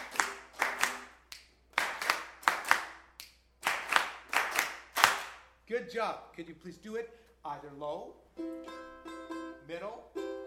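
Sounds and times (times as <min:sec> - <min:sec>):
rhythmic hand clapping on a count: 0:00.0 - 0:05.5
speech: 0:05.7 - 0:10.2.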